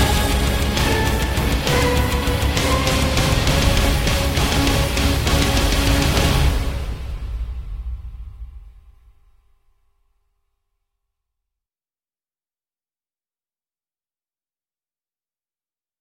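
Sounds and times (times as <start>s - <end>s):
rock mix: 0.0s - 7.2s.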